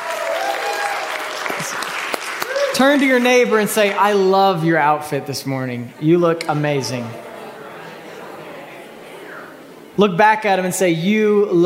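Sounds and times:
audience clapping hands: 0:00.0 - 0:04.4
speech: 0:02.8 - 0:07.2, 0:10.0 - 0:11.6
faint murmur of voices: 0:05.8 - 0:10.1.

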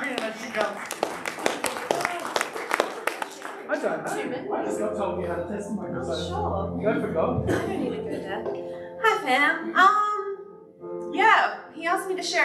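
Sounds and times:
audience clapping to welcome a speaker: 0:00.0 - 0:04.3
speech: 0:03.8 - 0:10.0, 0:11.4 - 0:12.4
people talking and chuckling: 0:04.0 - 0:08.7.

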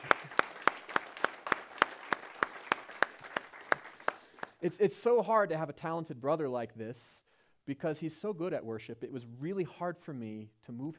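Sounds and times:
applause: 0:00.0 - 0:04.6
speech: 0:04.6 - 0:10.9.

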